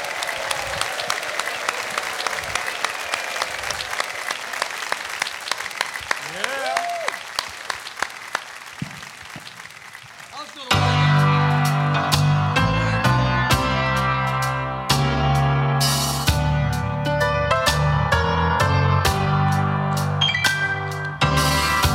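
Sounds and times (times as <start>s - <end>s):
live show audience applauding to welcome a guest onto the stage: 0.0s - 10.8s
music: 10.7s - 21.9s.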